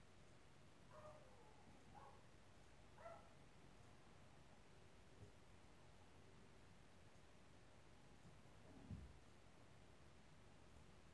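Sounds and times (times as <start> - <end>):
low hiss: 0.0 - 11.1
dog barking: 0.9 - 1.4, 2.0 - 2.2, 3.0 - 3.3.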